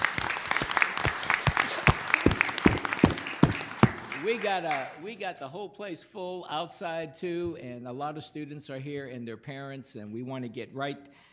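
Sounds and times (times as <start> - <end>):
audience clapping at a school board recognition night: 0.0 - 5.0
speech: 4.2 - 11.3.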